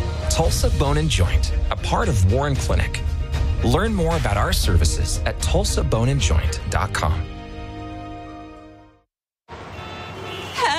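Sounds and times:
speech: 0:00.4 - 0:07.4
car horns honking in traffic: 0:09.6 - 0:10.7.

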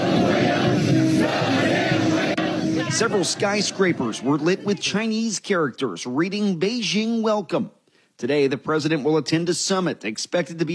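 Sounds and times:
hundreds of Chinese men and women chanting in unison: 0:00.0 - 0:04.9
speech: 0:03.0 - 0:10.7.

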